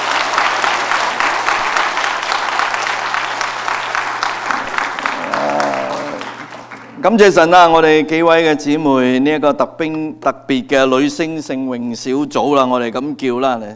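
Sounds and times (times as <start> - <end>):
audience applause: 0.0 - 7.0
speech: 7.0 - 13.7.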